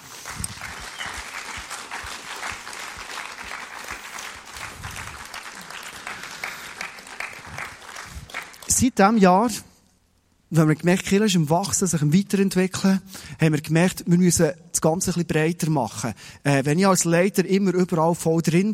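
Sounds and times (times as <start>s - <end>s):
audience applause: 0.0s - 8.7s
speech: 8.8s - 9.7s, 10.5s - 18.7s.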